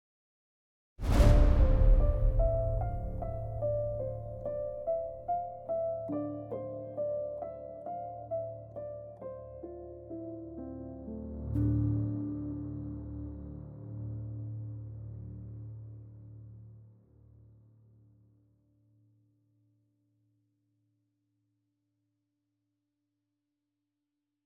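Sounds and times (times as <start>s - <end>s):
sad music at 50 bpm: 1.1s - 16.5s.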